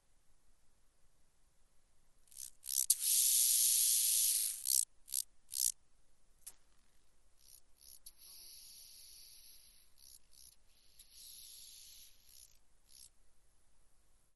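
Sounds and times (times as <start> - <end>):
large banded grasshopper stridulation: 2.3 - 5.7, 7.4 - 13.1.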